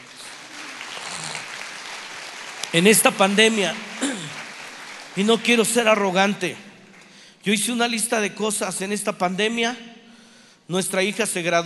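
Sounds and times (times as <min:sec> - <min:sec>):
applause: 0:00.0 - 0:07.7
speech: 0:02.7 - 0:03.9, 0:05.2 - 0:06.7, 0:07.4 - 0:09.9, 0:10.7 - 0:11.6.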